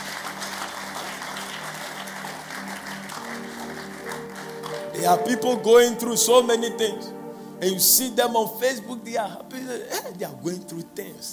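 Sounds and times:
crowd clapping: 0.0 - 5.6
speech: 5.0 - 11.3.

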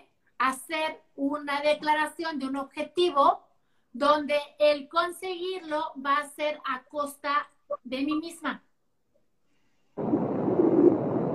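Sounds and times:
speech: 0.4 - 8.7
thunder from a heavy storm: 10.0 - 11.3.

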